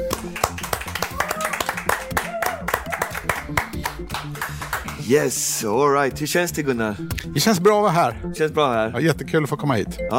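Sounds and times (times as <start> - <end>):
audience applause: 0.1 - 5.0
speech: 5.1 - 10.1.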